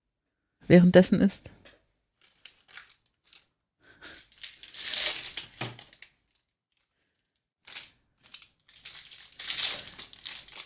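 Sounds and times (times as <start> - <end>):
speech: 0.7 - 1.6
sweets wrapper package crinkling: 2.1 - 10.6.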